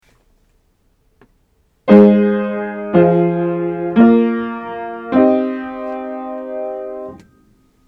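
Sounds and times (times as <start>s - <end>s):
root position triads for aural training: 1.9s - 7.3s.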